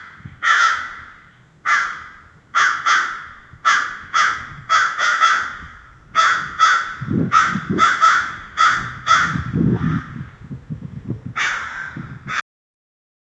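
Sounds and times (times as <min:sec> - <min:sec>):
crow screaming loud: 0:00.0 - 0:10.2, 0:11.4 - 0:12.4.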